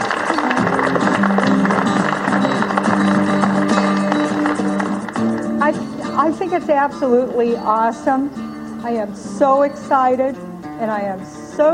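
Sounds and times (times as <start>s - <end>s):
audience round of applause: 0.0s - 6.2s
speech: 6.6s - 11.7s.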